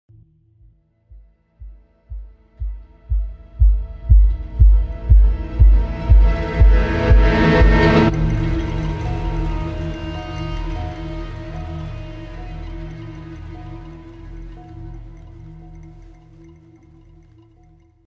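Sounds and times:
trailer music: 0:00.1 - 0:18.0.

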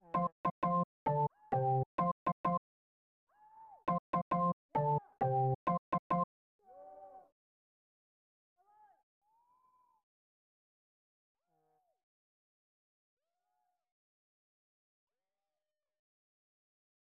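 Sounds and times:
organ music: 0:00.0 - 0:02.6, 0:03.9 - 0:06.2.

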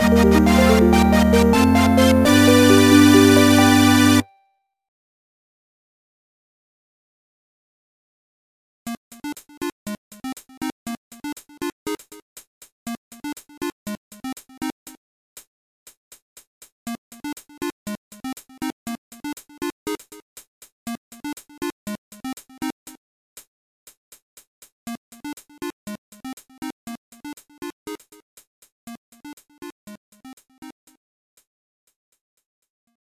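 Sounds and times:
fanfare: 0:00.0 - 0:04.3.

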